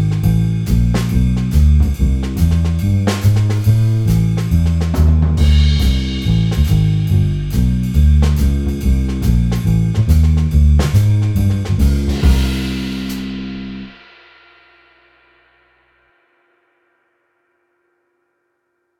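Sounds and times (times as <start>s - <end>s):
blues music in C minor: 0.0s - 14.0s.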